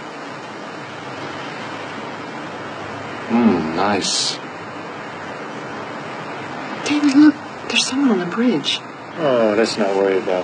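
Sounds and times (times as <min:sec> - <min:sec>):
river water flowing: 0:00.0 - 0:10.4
speech: 0:03.3 - 0:04.4, 0:07.1 - 0:10.4.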